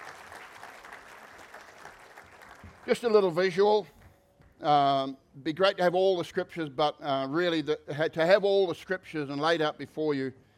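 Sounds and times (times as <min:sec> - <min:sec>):
audience clapping for helpers at a church gathering: 0:00.0 - 0:04.6
speech: 0:02.9 - 0:04.0, 0:04.6 - 0:10.4.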